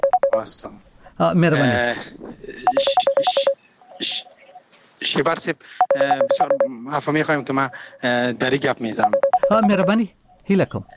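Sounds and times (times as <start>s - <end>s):
Skype call ringing tones: 0.0s - 0.5s, 2.7s - 4.0s, 5.8s - 6.8s, 9.0s - 10.0s
speech: 0.4s - 4.3s, 5.0s - 10.9s.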